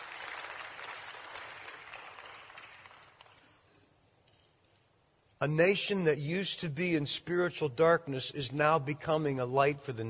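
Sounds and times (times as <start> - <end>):
crowd applauding: 0.0 - 3.4
speech: 5.4 - 10.0.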